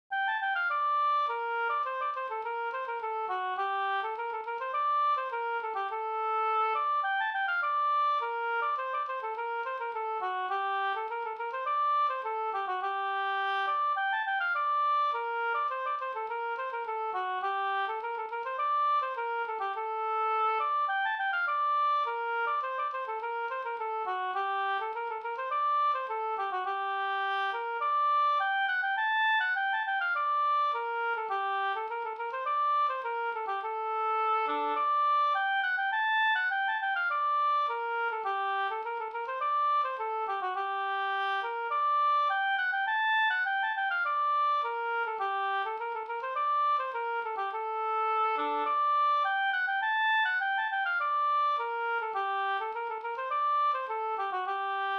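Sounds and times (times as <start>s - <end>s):
polska folk dance tune: 0.1s - 54.9s.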